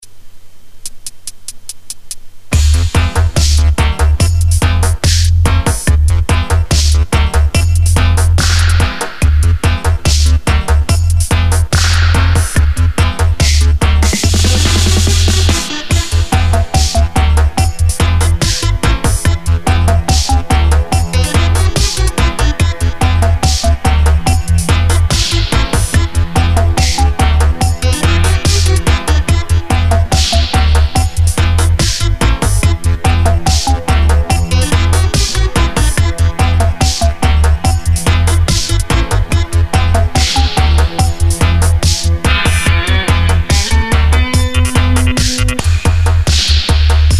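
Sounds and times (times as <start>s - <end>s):
safari dub music: 1.3s - 47.1s.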